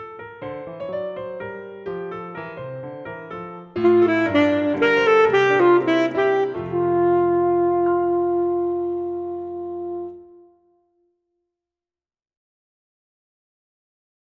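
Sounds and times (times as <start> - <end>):
full saxophone music: 3.8 - 10.9.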